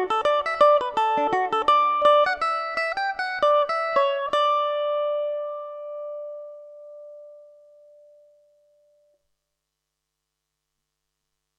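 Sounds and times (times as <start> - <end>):
mandolin playing a reel in D major: 0.0 - 8.4.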